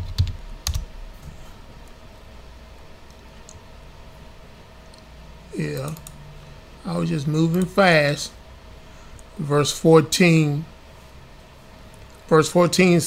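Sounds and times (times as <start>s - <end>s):
speech: 5.6s - 6.1s, 6.8s - 8.4s, 9.4s - 10.7s, 12.3s - 13.0s
computer keyboard typing: 5.7s - 6.2s.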